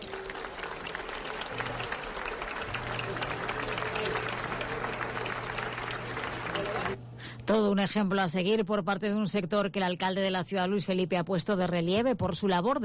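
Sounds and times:
audience applause: 0:00.0 - 0:07.0
speech: 0:07.5 - 0:12.8.

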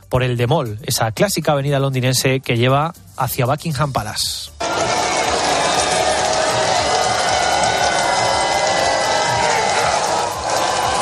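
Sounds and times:
speech: 0:00.1 - 0:04.9
crowd cheering at royal procession: 0:04.6 - 0:11.0.

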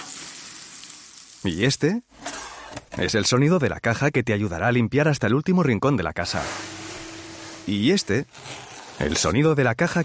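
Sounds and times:
food sizzling on a barbecue: 0:00.0 - 0:01.5
speech: 0:01.4 - 0:02.2, 0:03.0 - 0:06.8, 0:07.6 - 0:10.0.

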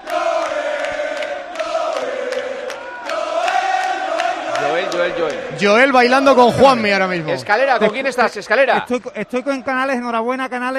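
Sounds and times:
about 2,000 fans chanting and cheering for football players on a balcony: 0:00.0 - 0:10.7
speech: 0:04.9 - 0:10.7.

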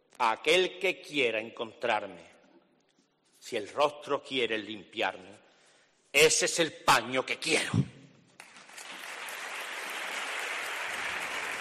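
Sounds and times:
speech: 0:00.2 - 0:02.3, 0:03.4 - 0:05.4, 0:06.1 - 0:07.9
audience applause after a recited poem: 0:08.4 - 0:11.6.

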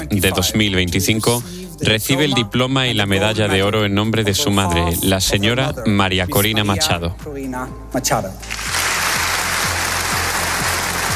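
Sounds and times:
speech: 0:00.0 - 0:09.0
large crowd applauding at a ceremony: 0:08.5 - 0:11.1.

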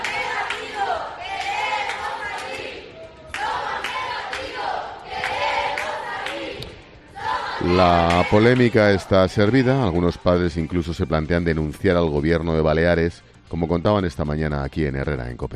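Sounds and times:
youths shouting and chanting from hotel balconies: 0:00.0 - 0:10.4
speech: 0:07.7 - 0:15.5.

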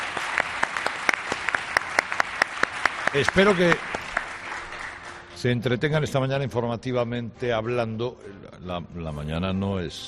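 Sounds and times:
audience applause: 0:00.0 - 0:05.4
speech: 0:03.1 - 0:04.0, 0:05.4 - 0:10.0.

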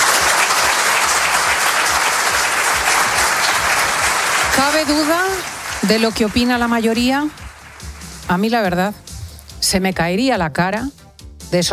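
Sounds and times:
loud sustained ovation: 0:00.0 - 0:08.3
speech: 0:04.6 - 0:07.4, 0:08.3 - 0:09.0, 0:09.6 - 0:11.7.

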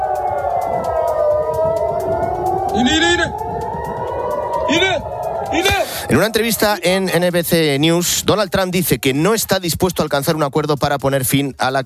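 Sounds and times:
air raid sirens in Tel Aviv: 0:00.0 - 0:09.1
speech: 0:04.7 - 0:11.8.

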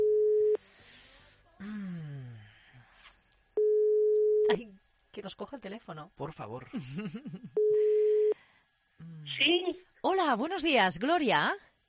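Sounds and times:
telephone dial tone: 0:00.0 - 0:00.6, 0:03.6 - 0:04.6, 0:07.6 - 0:08.4
speech: 0:04.5 - 0:08.0, 0:09.0 - 0:11.7.

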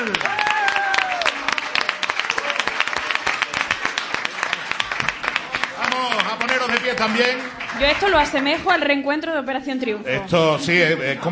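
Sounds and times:
audience applause: 0:00.0 - 0:08.9
speech: 0:07.0 - 0:11.3.

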